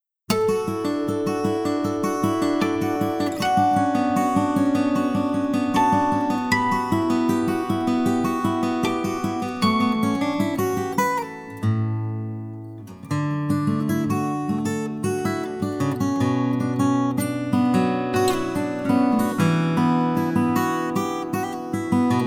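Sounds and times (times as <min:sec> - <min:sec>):
acoustic music: 0:00.0 - 0:22.2.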